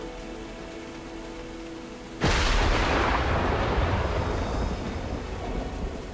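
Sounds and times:
enormous crash of thunder: 2.2 - 6.1.

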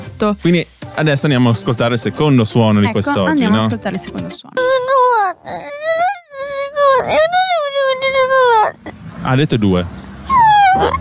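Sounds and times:
speech: 0.2 - 5.8, 9.2 - 10.0
baby boy crying: 4.5 - 8.9, 10.3 - 10.9.

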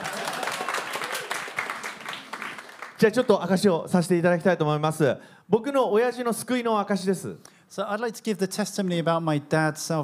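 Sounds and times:
audience applause: 0.0 - 3.2
speech: 3.0 - 10.0.

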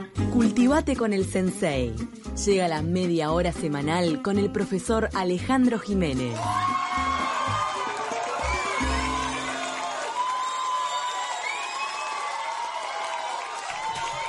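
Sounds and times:
speech: 0.3 - 6.8
crowd cheering and whooping: 6.3 - 14.2
high shouts: 6.3 - 14.2
scattered clapping: 7.4 - 14.2.

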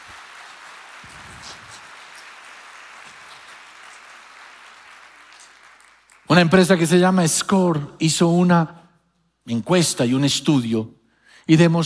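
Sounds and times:
audience applause: 0.0 - 6.4
speech: 6.3 - 8.8, 9.5 - 11.8.

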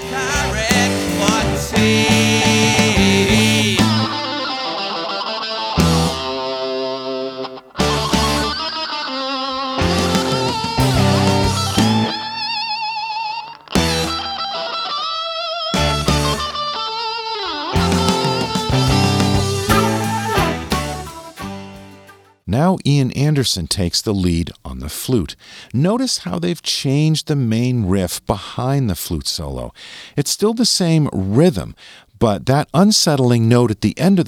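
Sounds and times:
electric rock guitar solo with echo: 0.0 - 22.4
speech: 1.6 - 2.2, 22.8 - 34.2.

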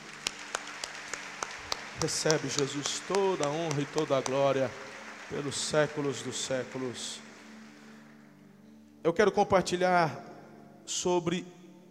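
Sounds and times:
audience applause: 0.0 - 8.2
speech: 2.0 - 7.2, 9.0 - 10.3, 10.9 - 11.6.

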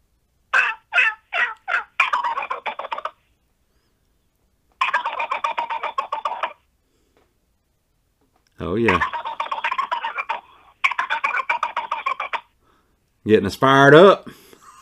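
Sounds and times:
person imitating a wild turkey gobble: 0.5 - 3.2, 4.8 - 6.6, 8.8 - 12.6
speech: 8.6 - 9.2, 13.2 - 14.4.

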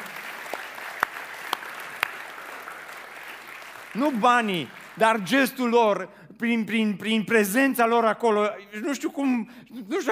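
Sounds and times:
audience applause: 0.0 - 5.8
speech: 3.9 - 10.0.

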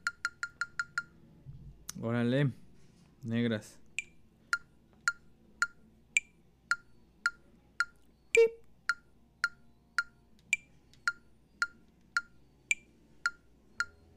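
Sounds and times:
electronic metronome beeps: 0.0 - 1.2, 4.0 - 14.1
speech: 2.0 - 2.6, 3.2 - 3.8.

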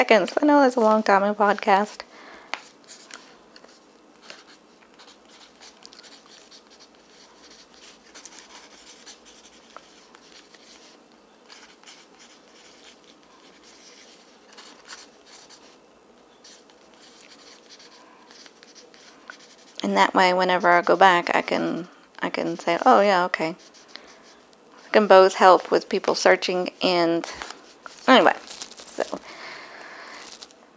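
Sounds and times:
speech: 0.0 - 2.1, 19.9 - 23.7, 24.9 - 27.5, 28.1 - 28.3
pen scratching while handwriting a short note: 4.2 - 15.8, 16.4 - 19.8.

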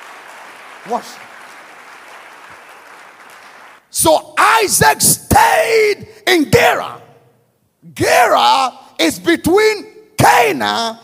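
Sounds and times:
audience applause: 0.0 - 3.8
speech: 0.8 - 1.3, 3.9 - 7.0, 7.8 - 11.0.

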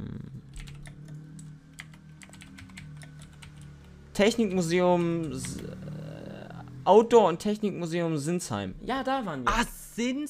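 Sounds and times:
steady low hum: 0.0 - 9.9
typing on a computer keyboard: 0.5 - 3.8
speech: 4.2 - 5.9, 6.9 - 10.2.

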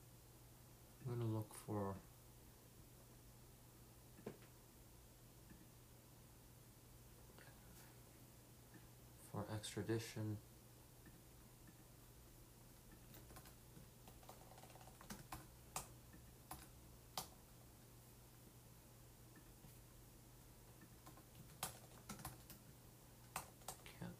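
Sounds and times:
speech: 1.0 - 2.1, 9.6 - 10.5
typing on a computer keyboard to enter a search: 13.0 - 17.4, 21.0 - 22.6, 23.2 - 24.0.

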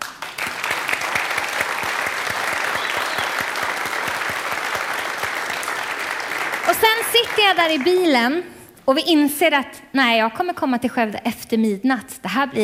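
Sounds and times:
audience applause: 0.0 - 8.0
speech: 7.1 - 12.6.

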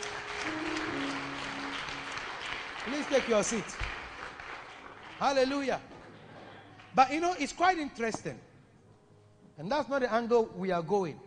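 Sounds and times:
audience clapping: 0.0 - 7.7
speech: 3.0 - 3.9, 5.2 - 5.9, 6.9 - 8.5, 9.6 - 11.2.

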